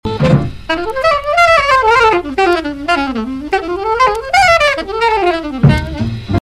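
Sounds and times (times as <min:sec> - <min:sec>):
drum break: 0:00.0 - 0:06.4.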